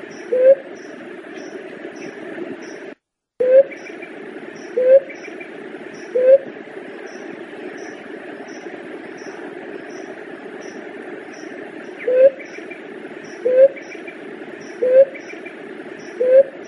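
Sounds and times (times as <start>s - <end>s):
Leptotila dove cooing: 0.0s - 0.7s, 3.4s - 4.0s, 4.6s - 5.2s, 6.0s - 6.5s, 12.0s - 12.5s, 13.3s - 13.9s, 14.7s - 15.4s, 16.1s - 16.6s.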